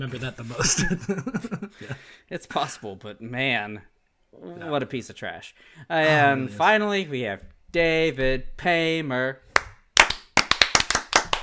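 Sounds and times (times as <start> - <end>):
speech: 0.0 - 9.6
laughter: 0.5 - 2.0
several people clapping out of sync: 9.5 - 11.4.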